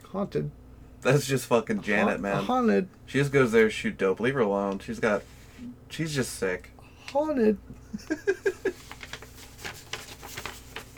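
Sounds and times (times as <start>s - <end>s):
speech: 0.1s - 8.8s
laughter: 7.8s - 8.9s
paper page being flipped: 8.7s - 10.9s.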